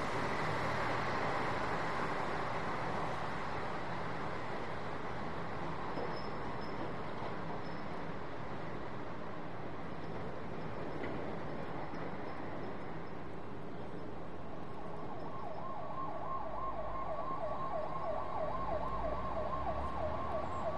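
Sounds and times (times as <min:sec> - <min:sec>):
two trucks pulling in and passing by: 0:00.0 - 0:20.7
truck squeaks and rattles: 0:05.9 - 0:08.0.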